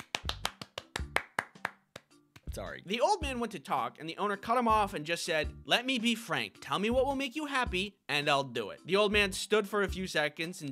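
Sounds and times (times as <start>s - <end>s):
single person clapping hands: 0.0s - 2.6s
speech: 2.6s - 10.6s.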